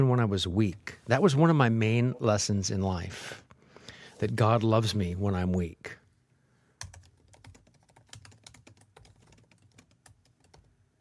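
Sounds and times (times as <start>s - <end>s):
speech: 0.0s - 3.4s, 4.2s - 6.0s
typing on a computer keyboard: 6.8s - 10.7s.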